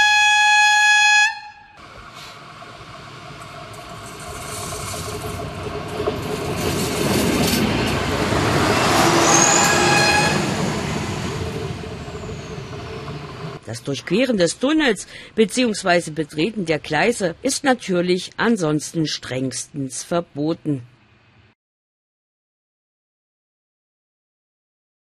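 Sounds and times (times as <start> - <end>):
approaching train sounding its horn: 0.0 - 1.8, 9.1 - 10.7
rumbling roar of the train: 1.8 - 17.9
speech: 13.8 - 20.9.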